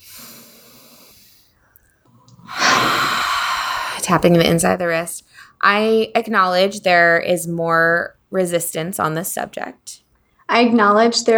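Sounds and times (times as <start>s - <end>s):
person taking a deep breath during a tapping relaxation exercise: 0.0s - 1.5s, 2.5s - 4.7s
speech: 4.1s - 11.3s.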